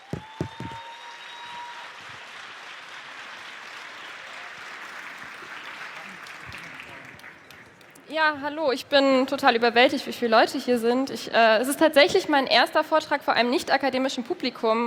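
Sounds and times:
audience applause: 0.0s - 8.1s
speech: 8.1s - 14.8s.

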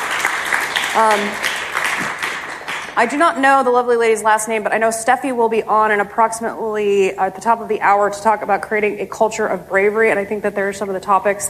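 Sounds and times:
audience clapping at a talk: 0.0s - 3.2s
speech: 1.0s - 2.1s, 3.0s - 11.4s.

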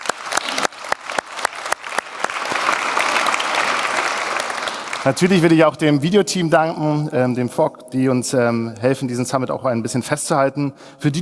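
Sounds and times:
audience clapping: 0.0s - 5.6s
speech: 5.0s - 11.2s.

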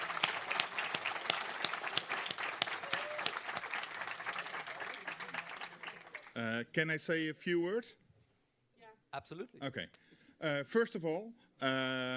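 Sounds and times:
audience applause: 0.0s - 6.4s
speech: 6.4s - 8.0s, 9.2s - 12.1s.

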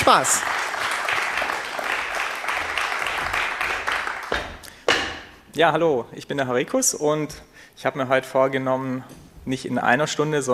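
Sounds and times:
audience applause: 0.0s - 4.6s
speech: 0.1s - 0.8s, 5.6s - 10.5s.

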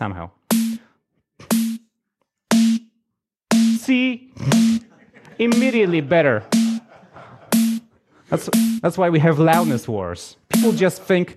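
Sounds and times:
speech: 0.0s - 0.4s, 3.9s - 4.7s, 5.4s - 6.6s, 8.3s - 11.3s
distorted snare-like drum hits: 0.5s - 1.8s, 2.5s - 2.9s, 3.5s - 4.9s, 5.5s - 5.8s, 6.5s - 6.9s, 7.5s - 7.9s, 8.5s - 9.8s, 10.5s - 11.0s
laughter: 4.5s - 8.5s.

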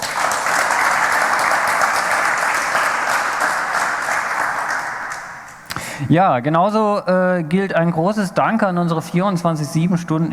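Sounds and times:
audience applause: 0.0s - 5.5s
speech: 6.0s - 10.3s.

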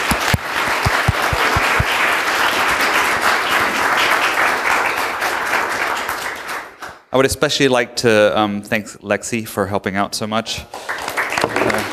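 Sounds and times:
audience applause: 0.0s - 7.0s, 10.8s - 11.9s
speech: 7.1s - 11.0s.

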